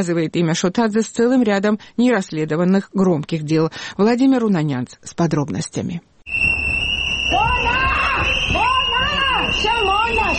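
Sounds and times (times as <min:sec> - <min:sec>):
speech: 0:00.0 - 0:06.5
steady high whistle from protest crowd: 0:06.3 - 0:10.3
protest crowd shouting: 0:07.3 - 0:10.3.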